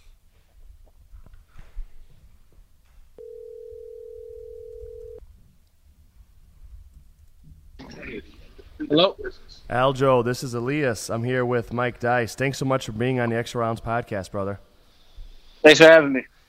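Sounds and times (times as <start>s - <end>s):
telephone ringback tone: 3.2s - 5.2s
speech: 8.9s - 14.7s, 15.6s - 16.4s.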